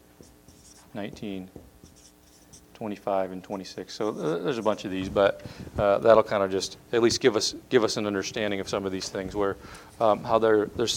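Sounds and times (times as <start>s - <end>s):
pen scratching on paper writing notes by hand: 0.2s - 1.0s, 1.8s - 2.7s
speech: 0.9s - 1.6s, 2.8s - 10.9s.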